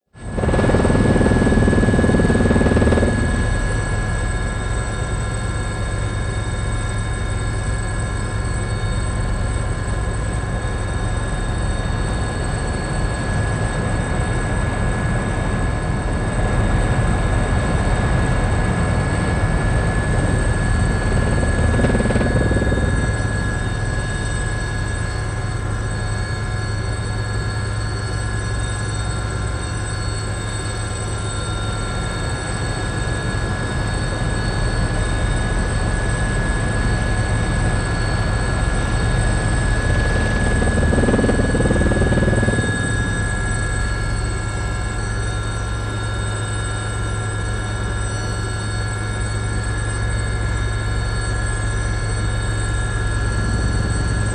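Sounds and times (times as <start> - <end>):
helicopter recorded from the cabin: 0.2 - 54.3.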